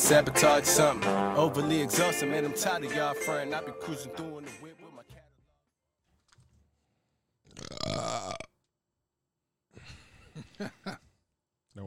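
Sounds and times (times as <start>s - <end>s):
speech: 0.1s - 4.6s, 10.6s - 11.0s
loud burping: 7.5s - 8.6s
laughter: 10.3s - 11.1s.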